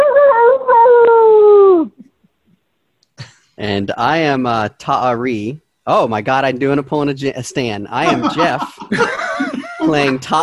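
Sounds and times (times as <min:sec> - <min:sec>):
person imitating a howl: 0:00.0 - 0:02.0
speech: 0:03.7 - 0:09.1, 0:09.8 - 0:10.4
laughter: 0:08.0 - 0:10.4.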